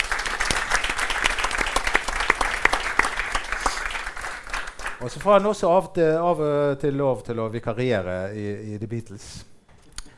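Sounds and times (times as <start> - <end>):
audience applause: 0.0 - 5.4
speech: 5.0 - 9.5.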